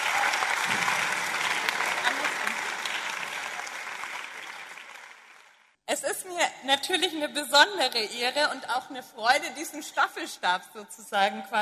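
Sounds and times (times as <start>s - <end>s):
audience applause: 0.0s - 5.7s
speech: 6.6s - 11.6s.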